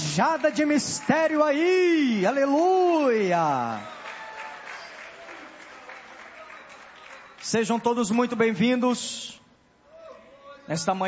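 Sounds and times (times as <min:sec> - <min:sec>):
church congregation applauding: 0:00.0 - 0:08.5
speech: 0:00.2 - 0:04.0, 0:07.5 - 0:09.4, 0:10.7 - 0:11.0.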